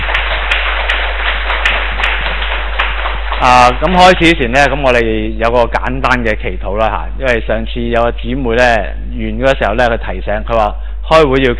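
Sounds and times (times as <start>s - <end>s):
audience applause: 0.0s - 4.3s
speech: 3.4s - 11.5s.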